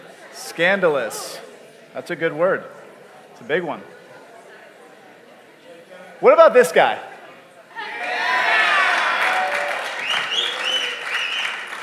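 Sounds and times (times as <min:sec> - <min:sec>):
speech: 0:00.6 - 0:02.8, 0:03.4 - 0:04.0, 0:06.2 - 0:07.1
audience applause: 0:08.0 - 0:11.8.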